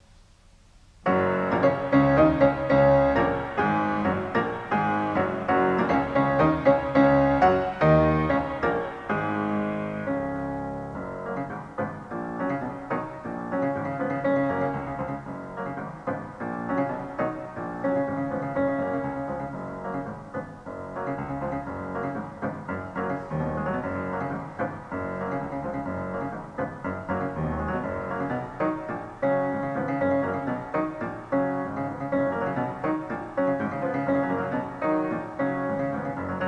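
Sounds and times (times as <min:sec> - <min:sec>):
piano in Smith Hall: 0:00.0 - 0:36.4.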